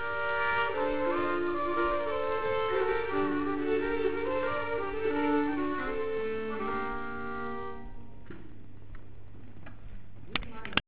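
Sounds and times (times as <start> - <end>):
polska folk tune from Gotland: 0.0 - 8.7.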